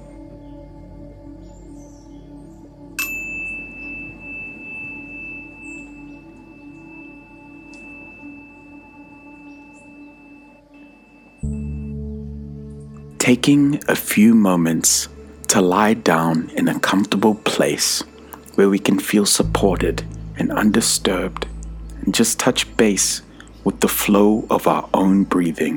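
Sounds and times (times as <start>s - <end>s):
meditation bell ringing: 3.0s - 11.9s, 19.4s - 25.1s
speech: 13.3s - 25.7s.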